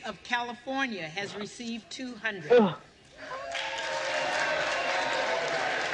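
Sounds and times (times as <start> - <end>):
speech: 0.0 - 3.4
large crowd applause and cheering in a chamber: 3.2 - 5.9.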